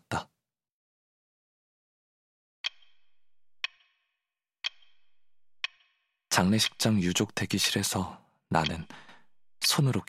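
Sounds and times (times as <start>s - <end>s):
clock ticking: 2.6s - 10.0s
speech: 6.4s - 9.0s, 9.8s - 10.0s.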